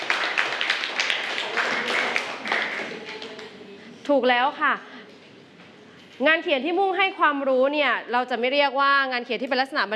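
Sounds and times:
classroom clapping for a student: 0:00.0 - 0:03.6
speech: 0:04.1 - 0:04.9, 0:06.2 - 0:09.9.

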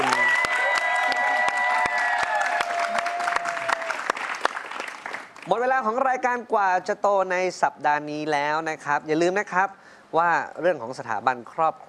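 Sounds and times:
audience applause: 0:00.0 - 0:05.4
speech: 0:05.5 - 0:11.8.

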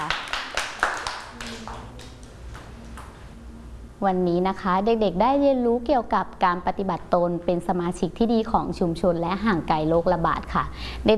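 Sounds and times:
people clapping: 0:00.0 - 0:03.2
speech: 0:04.0 - 0:11.1.

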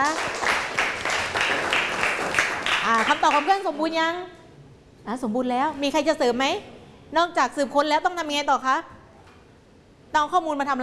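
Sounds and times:
classroom applause: 0:00.0 - 0:03.7
speech: 0:02.9 - 0:04.4, 0:05.0 - 0:09.0, 0:10.1 - 0:10.8.

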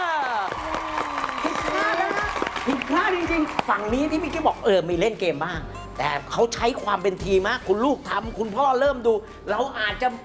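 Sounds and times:
people cheering or chanting: 0:00.0 - 0:04.6
rhythmic hand claps: 0:00.2 - 0:04.4
speech: 0:03.1 - 0:10.2.

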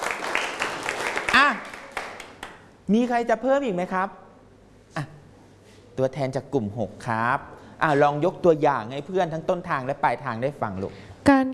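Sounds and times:
classroom students clapping for a classmate: 0:00.0 - 0:02.7
speech: 0:02.9 - 0:04.2, 0:06.0 - 0:11.5.

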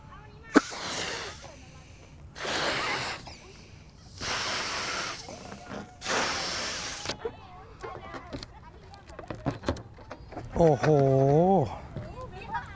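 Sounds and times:
person blowing out breath: 0:00.6 - 0:01.6, 0:02.4 - 0:03.5, 0:04.1 - 0:07.1
speech: 0:10.6 - 0:11.8.

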